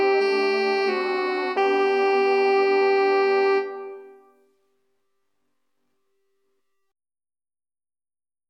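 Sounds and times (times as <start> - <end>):
instrumental soprano part in G minor: 0.0 - 4.5.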